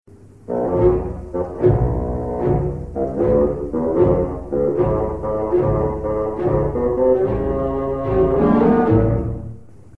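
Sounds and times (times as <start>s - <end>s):
bassoon: 0.4s - 9.8s.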